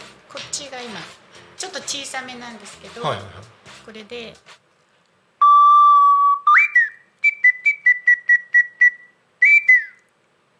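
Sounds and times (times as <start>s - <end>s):
speech: 0.8s - 4.5s
bird call whistle being blown: 5.4s - 10.1s.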